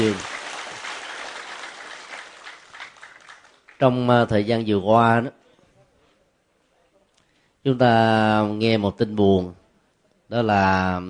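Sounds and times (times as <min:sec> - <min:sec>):
speech: 0:00.0 - 0:00.3, 0:03.8 - 0:05.4, 0:07.6 - 0:09.6, 0:10.3 - 0:11.0
audience applause: 0:00.0 - 0:03.8.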